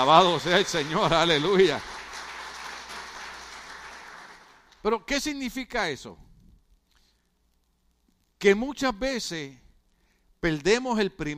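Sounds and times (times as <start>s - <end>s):
speech: 0.0s - 1.9s, 4.8s - 6.2s, 8.4s - 9.6s, 10.4s - 11.3s
audience applause: 0.0s - 4.8s.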